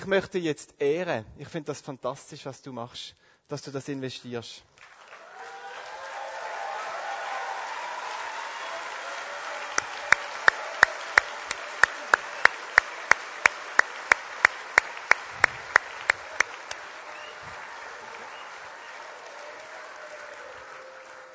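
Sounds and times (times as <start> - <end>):
speech: 0.0 - 4.8
thin meager applause from a few people: 4.8 - 21.3.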